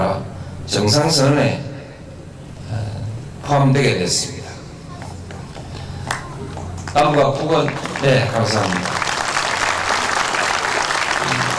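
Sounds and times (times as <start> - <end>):
speech: 0.2 - 1.7, 3.5 - 4.5, 6.9 - 9.0
audience applause: 6.1 - 11.5.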